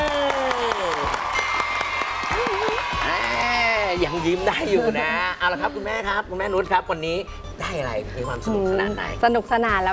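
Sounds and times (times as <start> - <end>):
audience applauding at an award presentation: 0.0 - 3.9
speech: 4.0 - 9.9.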